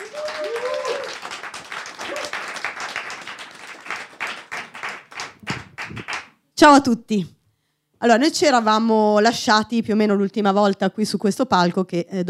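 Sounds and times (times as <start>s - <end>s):
audience applause: 0.0s - 6.3s
speech: 6.6s - 7.4s, 8.0s - 12.2s.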